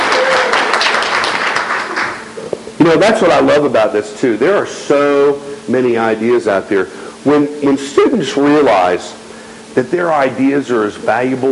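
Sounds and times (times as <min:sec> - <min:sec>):
audience applause: 0:00.0 - 0:02.3
speech: 0:02.9 - 0:09.2, 0:09.8 - 0:11.5.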